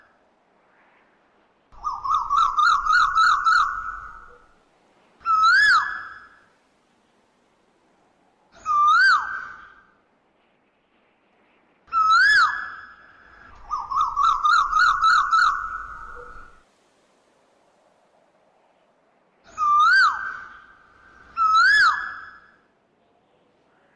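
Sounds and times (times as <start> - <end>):
Asian koel swooping and rising-falling whistled calls: 1.8 - 4.5, 5.2 - 6.4, 8.6 - 10.0, 11.9 - 16.6, 19.5 - 22.7.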